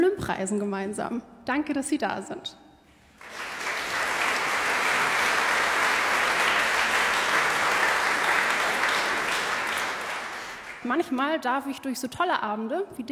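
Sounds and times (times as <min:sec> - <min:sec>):
speech: 0:00.3 - 0:02.6, 0:10.8 - 0:13.1
audience applause: 0:03.2 - 0:11.0.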